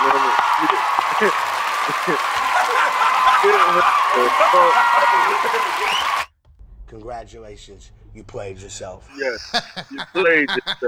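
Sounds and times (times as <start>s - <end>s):
people talking and chuckling: 0.0s - 6.0s, 9.1s - 10.8s
hand clapping: 0.0s - 6.3s, 9.2s - 10.8s
speech: 1.2s - 1.4s, 2.1s - 2.5s, 3.7s - 6.2s, 6.9s - 10.8s.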